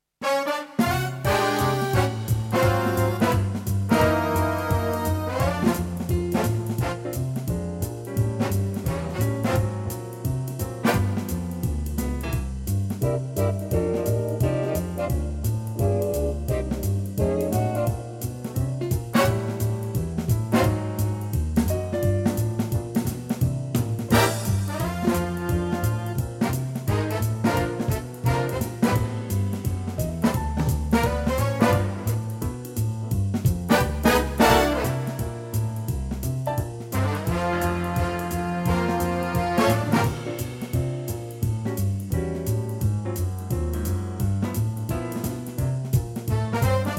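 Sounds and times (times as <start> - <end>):
live music track in B flat: 0.2 - 46.9.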